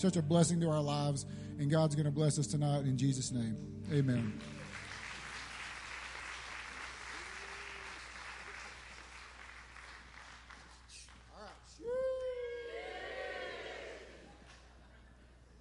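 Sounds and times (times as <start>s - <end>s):
speech: 0.0s - 4.6s
audience welcoming speaker with cheers, applause: 3.8s - 14.7s
louder shouts: 11.4s - 14.2s.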